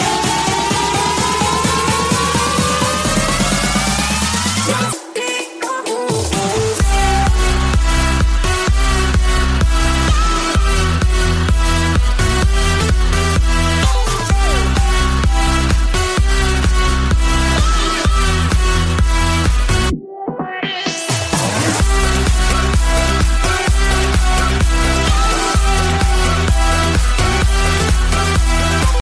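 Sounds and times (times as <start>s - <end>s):
electro music: 0.0s - 29.0s.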